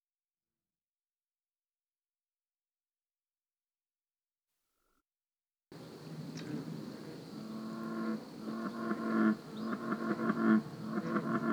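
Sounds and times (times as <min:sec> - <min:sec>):
American bullfrog giving deep throbbing croaks: 0:05.8 - 0:11.5.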